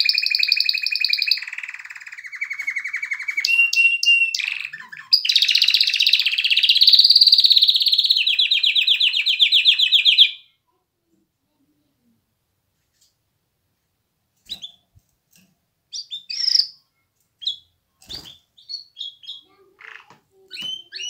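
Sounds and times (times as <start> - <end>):
canary singing trills and rolling tours: 0.0 - 10.5, 14.5 - 14.8, 15.9 - 21.0.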